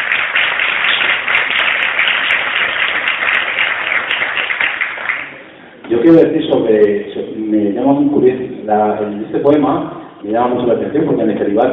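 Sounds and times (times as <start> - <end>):
audience applause: 0.0 - 5.6
speech: 6.0 - 11.7.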